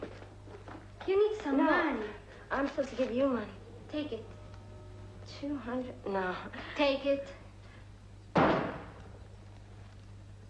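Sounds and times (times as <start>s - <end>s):
speech: 1.1s - 4.3s, 5.3s - 7.4s
gunshot: 8.3s - 9.0s.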